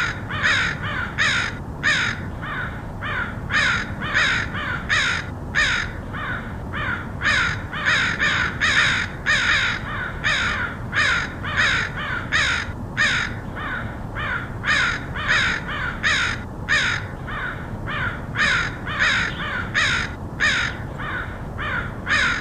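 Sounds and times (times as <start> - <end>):
crows cawing: 0.0 - 22.3.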